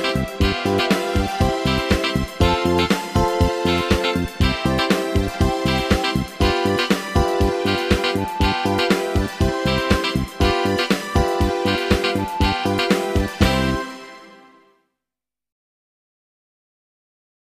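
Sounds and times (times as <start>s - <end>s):
recorder lesson playing with karaoke backing: 0.0s - 13.9s.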